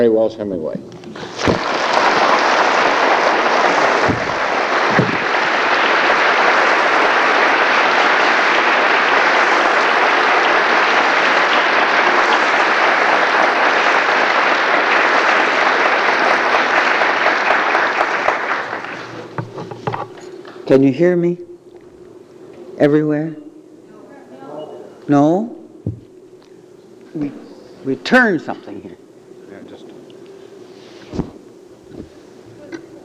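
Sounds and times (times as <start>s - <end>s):
speech: 0.0s - 1.7s, 20.7s - 21.5s, 22.8s - 23.4s, 25.1s - 25.6s, 27.2s - 29.0s
audience applause welcoming a guest speaker before a lecture: 1.2s - 20.0s.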